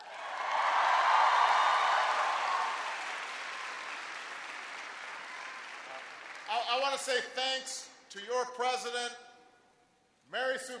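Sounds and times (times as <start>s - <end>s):
audience applause: 0.0s - 6.9s
speech: 6.7s - 9.3s, 10.3s - 10.7s.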